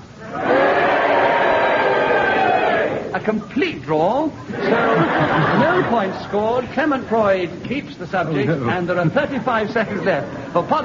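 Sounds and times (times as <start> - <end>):
game-show audience cheering and booing: 0.2 - 3.2
speech: 3.2 - 10.8
laughter: 4.4 - 7.0, 8.2 - 10.8.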